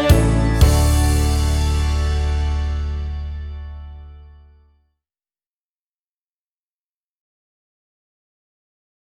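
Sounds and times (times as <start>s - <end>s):
ukulele song: 0.0s - 3.3s.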